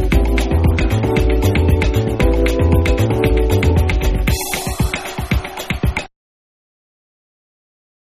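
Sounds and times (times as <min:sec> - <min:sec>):
bossa nova lounge mix: 0:00.0 - 0:06.1.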